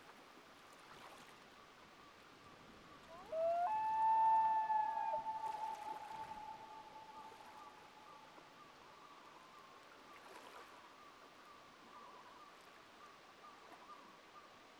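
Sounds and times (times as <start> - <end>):
common loon wail: 3.1 - 7.6.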